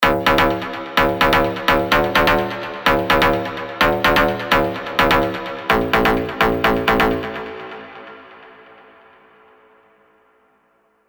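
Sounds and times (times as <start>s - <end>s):
synth stab: 0.0s - 8.1s.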